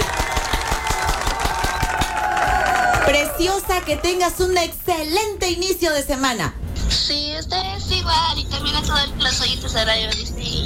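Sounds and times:
applause: 0.0s - 4.2s
speech: 3.1s - 10.6s.

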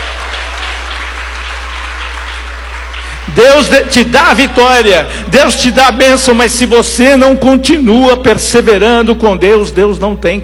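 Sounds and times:
crowd clapping hands: 0.0s - 5.0s
speech: 3.4s - 10.4s.

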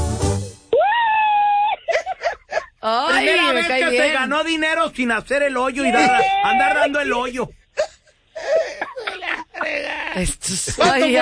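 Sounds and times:
person screaming: 0.7s - 1.9s, 5.8s - 7.1s, 9.6s - 10.2s
laughter: 1.5s - 4.2s, 5.8s - 7.2s, 7.8s - 11.2s
speech: 2.9s - 7.6s, 10.2s - 11.2s.

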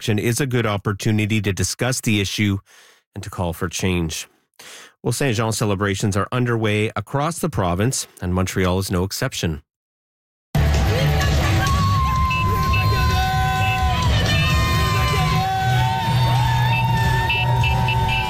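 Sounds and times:
speech: 0.0s - 9.7s
crowd cheering at street parade: 10.6s - 18.2s
whistles: 11.7s - 15.3s, 16.3s - 18.2s.

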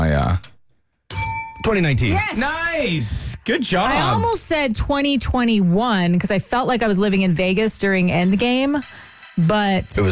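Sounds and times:
bell ding during a trivia quiz: 1.1s - 2.6s
speech: 1.6s - 10.1s.

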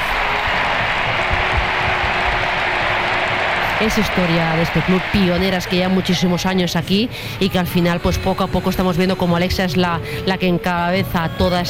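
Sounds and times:
Camp Nou stadium crowd applauding: 0.0s - 7.0s
speech: 3.8s - 11.6s.

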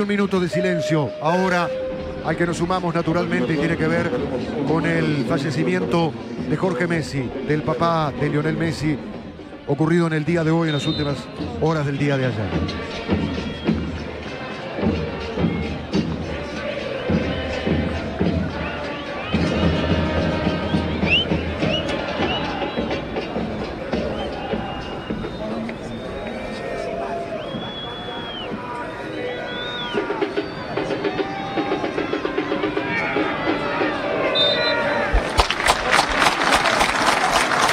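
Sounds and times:
speech: 0.0s - 13.4s
murmuring voices: 0.0s - 37.7s
scattered whistles: 10.7s - 11.3s, 20.6s - 23.1s, 24.0s - 31.8s, 34.2s - 37.7s
large stadium crowd applauding after minute's silence: 18.3s - 37.7s.

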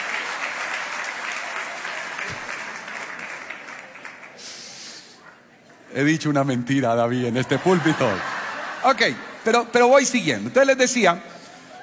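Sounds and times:
audience applauding: 0.0s - 4.8s
speech: 6.0s - 11.3s
laughter: 7.3s - 9.8s.

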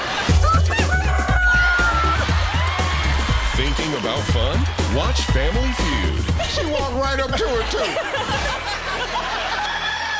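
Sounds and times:
laughter: 0.0s - 10.1s
person imitating a rooster crowing: 0.4s - 2.2s
speech: 4.0s - 9.5s.

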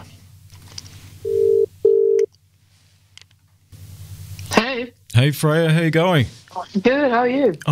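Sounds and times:
telephone ringing tone: 1.3s - 2.3s
speech: 5.2s - 7.6s.

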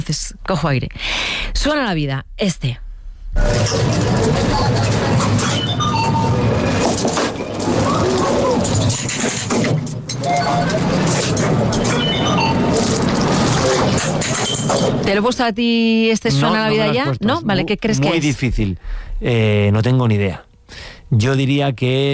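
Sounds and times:
speech: 0.0s - 2.8s, 3.4s - 5.8s, 9.0s - 22.1s
fairground ride running: 3.4s - 15.0s.

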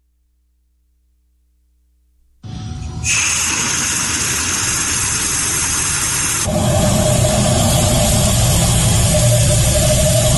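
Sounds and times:
air rushing from tap: 3.0s - 10.3s
water meter spinning: 3.0s - 10.3s.

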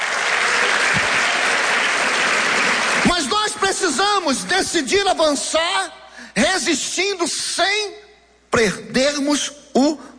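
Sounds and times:
audience applause: 0.0s - 3.7s
speech: 3.8s - 10.1s.

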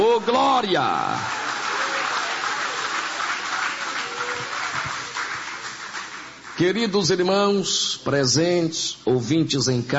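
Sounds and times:
church audience applauding: 0.0s - 6.6s
speech: 0.2s - 1.4s, 6.6s - 9.9s.

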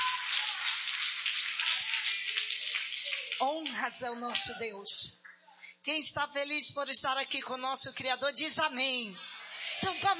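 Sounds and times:
audience clapping loudly: 0.0s - 4.6s
speech: 3.4s - 5.2s, 5.8s - 10.1s.

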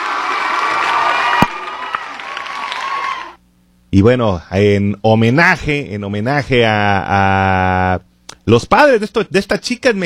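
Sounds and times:
applause and cheering: 0.0s - 3.4s
speech: 3.9s - 10.0s.

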